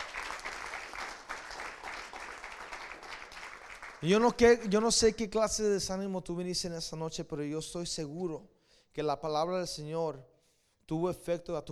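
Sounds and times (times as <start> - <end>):
audience applause: 0.0 - 4.1
speech: 4.0 - 10.3, 10.9 - 11.7.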